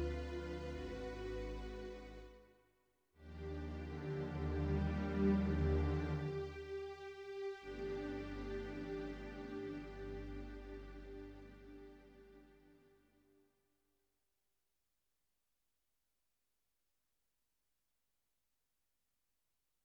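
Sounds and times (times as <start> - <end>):
strings on Yamaha NP-30 keyboard: 0.0 - 2.4, 3.2 - 13.0.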